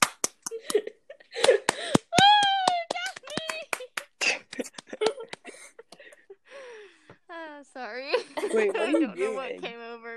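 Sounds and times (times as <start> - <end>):
hands clapping: 0.0 - 6.2
laughter: 0.5 - 6.4, 8.0 - 9.6
speech: 8.5 - 9.8.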